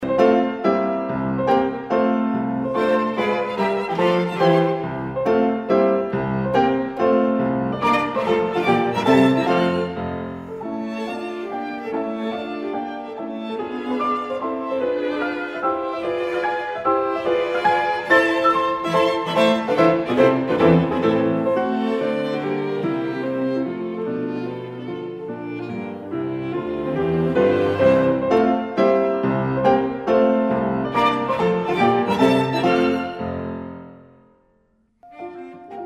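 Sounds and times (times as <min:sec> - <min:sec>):
piano quintet playing: 0:00.0 - 0:35.8.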